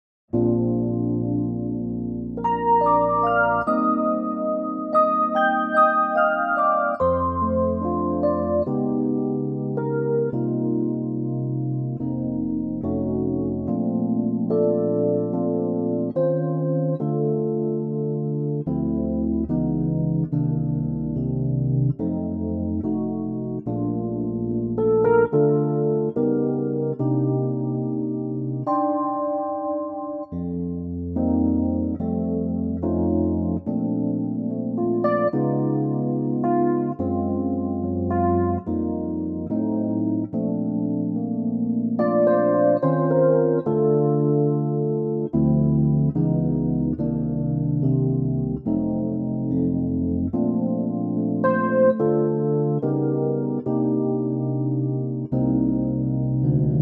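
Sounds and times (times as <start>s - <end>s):
Arturia synthesizer: 0.3s - 56.8s.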